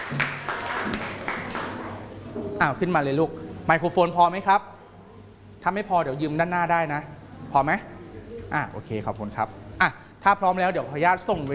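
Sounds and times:
audience applause: 0.0 - 2.1
speech: 2.6 - 4.8, 5.6 - 7.9, 8.5 - 11.5.

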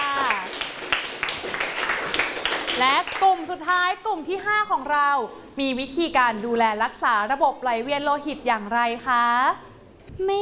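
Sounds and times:
students in a Thai classroom clapping: 0.0 - 3.5
speech: 2.8 - 10.4.

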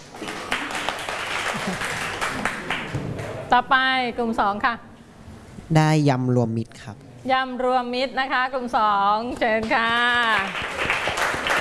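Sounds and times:
classroom applause: 0.1 - 3.3, 10.2 - 11.5
speech: 3.5 - 4.9, 5.7 - 10.7.

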